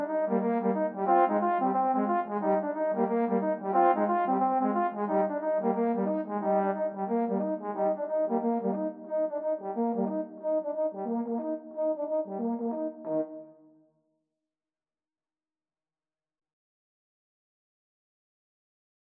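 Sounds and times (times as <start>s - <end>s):
trombone duet: 0.0s - 13.3s.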